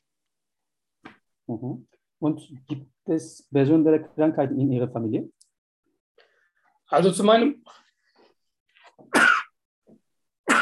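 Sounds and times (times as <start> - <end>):
speech: 1.5 - 5.4, 6.9 - 7.8
person sneezing during a German-language medical history interview: 9.0 - 9.6.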